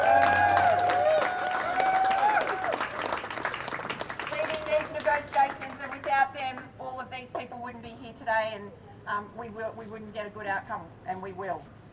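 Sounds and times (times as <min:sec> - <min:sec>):
cheers and whistles: 0:00.0 - 0:03.0
audience applause for delegates: 0:00.0 - 0:06.1
speech: 0:08.6 - 0:11.8.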